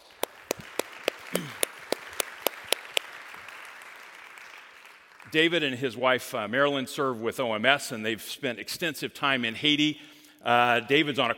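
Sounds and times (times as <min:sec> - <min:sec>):
hands clapping in welcome for a guest in a church: 0:00.0 - 0:05.7
speech: 0:05.3 - 0:11.3.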